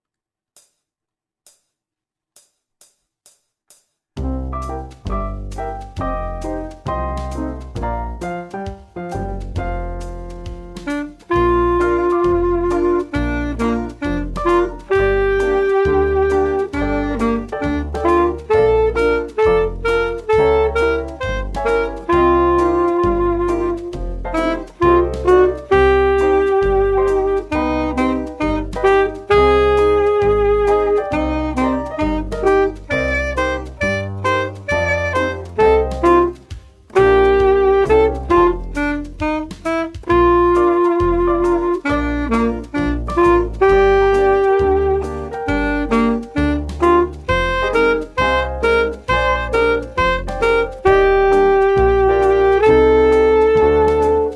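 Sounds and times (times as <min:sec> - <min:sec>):
saxophone: 0:04.6 - 0:54.3.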